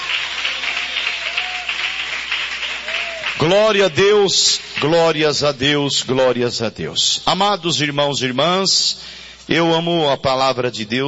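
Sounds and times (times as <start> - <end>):
audience clapping hands: 0.0 - 5.0
speech: 3.4 - 11.0.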